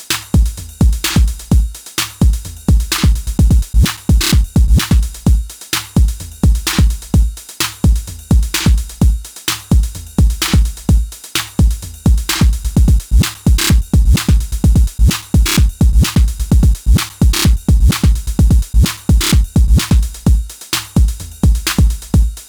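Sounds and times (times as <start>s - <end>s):
TR8 drum machine with scatter reverb and step delay: 0.0s - 22.4s.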